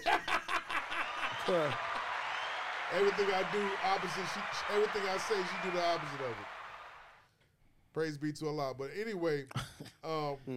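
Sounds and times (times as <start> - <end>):
person chuckling: 0.0 - 0.8
hand claps: 0.8 - 7.2
speech: 1.5 - 1.9, 2.9 - 6.6, 7.9 - 10.5.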